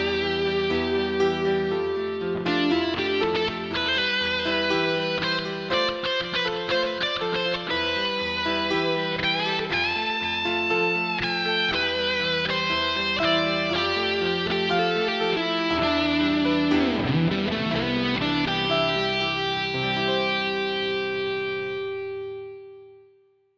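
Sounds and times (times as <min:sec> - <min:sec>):
classical solo piece: 0:00.0 - 0:23.0.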